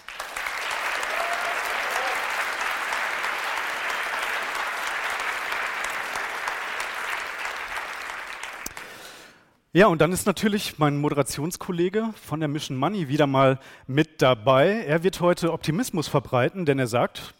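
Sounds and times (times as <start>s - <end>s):
audience applause: 0.0s - 9.1s
speech: 9.8s - 17.3s.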